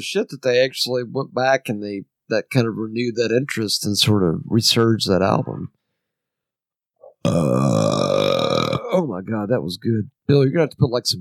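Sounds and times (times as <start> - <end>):
speech: 0.0 - 5.8, 7.2 - 8.2, 9.0 - 11.1
loud burp: 7.0 - 9.0.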